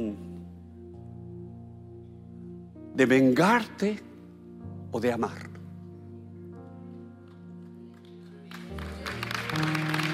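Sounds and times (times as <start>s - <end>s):
sustained keyboard chords: 0.0s - 10.1s
speech: 3.0s - 4.1s, 4.9s - 5.5s
audience applause: 8.0s - 10.1s.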